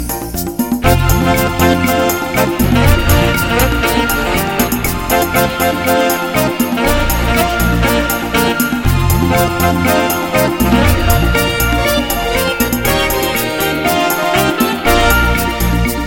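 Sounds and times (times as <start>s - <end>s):
paso doble music: 0.0s - 16.0s.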